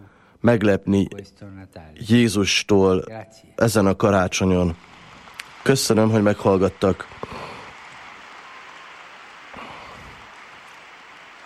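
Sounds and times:
speech: 0.4s - 4.9s, 5.6s - 7.5s
applause from pilgrims in audience hall: 4.4s - 11.4s.

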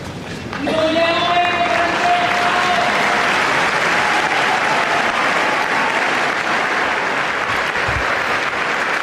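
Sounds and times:
pilgrims in the Paul VI Hall applauding Pope Francis's blessing: 0.5s - 9.0s.

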